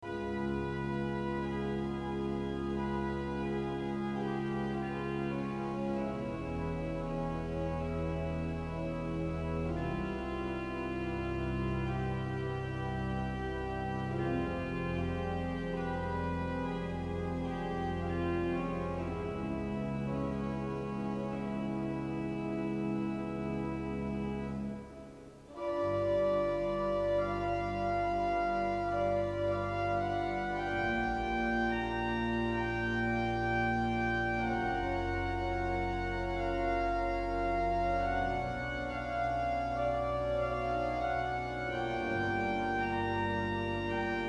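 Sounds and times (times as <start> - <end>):
organ meditation music: 0.0 - 44.2.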